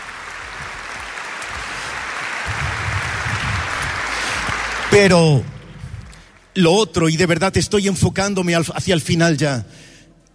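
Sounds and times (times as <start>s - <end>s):
audience applause: 0.0s - 6.6s
speech: 5.0s - 5.5s, 6.6s - 10.3s.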